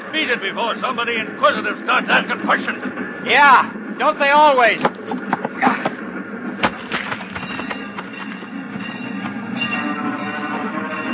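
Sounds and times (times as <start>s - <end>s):
train rolling by: 0.0s - 11.1s
speech: 0.1s - 5.9s
crossing bell: 7.4s - 11.1s.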